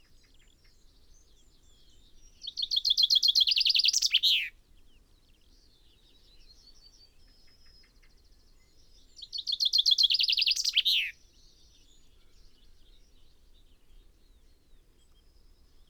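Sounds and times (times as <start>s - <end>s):
common chaffinch singing: 2.3s - 4.5s, 9.2s - 11.2s.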